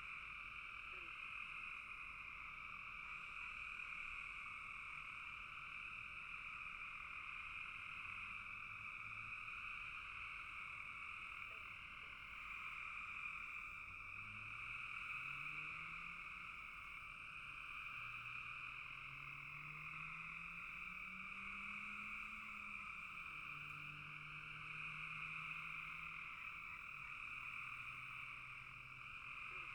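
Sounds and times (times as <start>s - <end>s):
frog chorus trilling: 0.3s - 29.7s.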